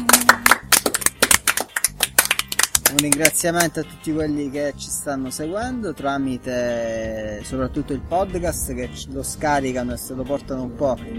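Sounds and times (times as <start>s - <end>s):
guests at a dinner gathering clapping: 0.0s - 3.4s
speech: 2.9s - 11.1s.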